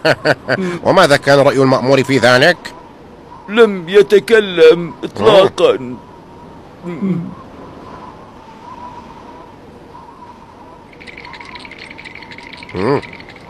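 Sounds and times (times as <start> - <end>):
speech: 0.0 - 2.7, 3.5 - 6.1, 6.8 - 7.4, 12.7 - 13.2
teeth chattering: 10.9 - 13.4
brief vocal sounds: 12.7 - 13.2.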